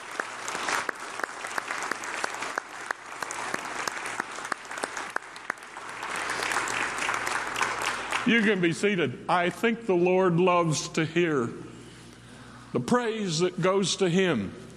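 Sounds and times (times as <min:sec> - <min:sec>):
audience applause: 0:00.0 - 0:08.6
speech: 0:08.2 - 0:11.7, 0:12.7 - 0:14.6.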